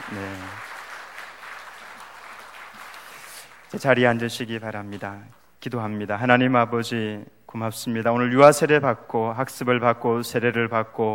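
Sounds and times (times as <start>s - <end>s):
church congregation applauding after a baptism service at a Presbyterian church: 0.0s - 5.4s
speech: 0.1s - 0.7s, 3.7s - 11.1s.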